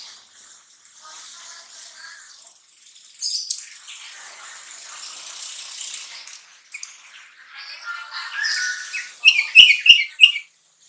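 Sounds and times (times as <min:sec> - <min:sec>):
sooty-headed bulbul singing: 0:08.3 - 0:10.5.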